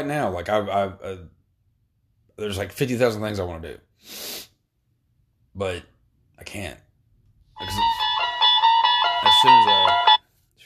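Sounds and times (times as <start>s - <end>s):
speech: 0.0s - 1.4s, 2.4s - 4.5s, 5.6s - 6.8s, 7.6s - 8.0s, 9.4s - 10.0s
phone ringtone melody: 7.6s - 10.2s.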